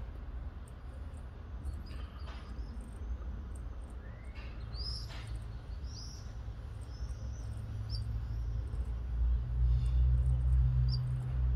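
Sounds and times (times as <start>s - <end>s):
canary call notes: 1.7s - 11.4s.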